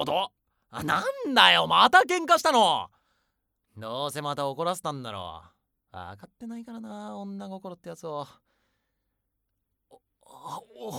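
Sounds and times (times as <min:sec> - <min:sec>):
speech: 0:00.0 - 0:03.0, 0:03.8 - 0:08.4, 0:09.9 - 0:10.9
person weeping: 0:10.4 - 0:10.9.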